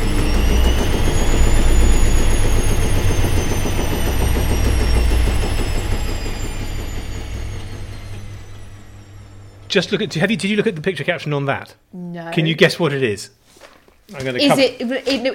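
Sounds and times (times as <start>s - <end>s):
washing machine spin cycle: 0.0s - 11.6s
speech: 9.7s - 13.4s, 14.1s - 15.3s.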